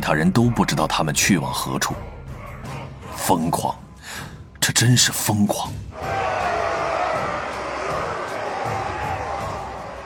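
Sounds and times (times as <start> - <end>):
speech: 0.0 - 2.2, 3.2 - 6.1
crowd roaring: 5.9 - 10.0.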